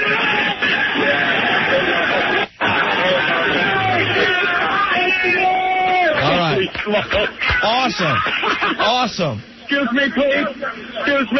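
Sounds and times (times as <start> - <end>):
laughter: 0.0 - 5.4, 6.0 - 11.3
loud cheering crowd outside: 0.0 - 8.6
speech: 6.9 - 11.3.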